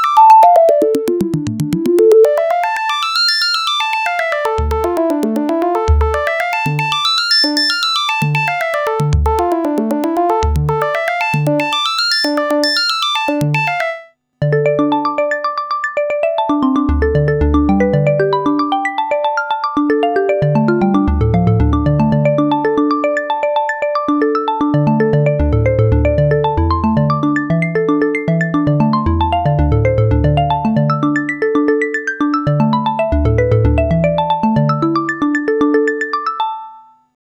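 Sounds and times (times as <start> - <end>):
Jupiter-8 synthesizer arpeggio without any effects: 0.0 - 15.6, 16.2 - 36.5.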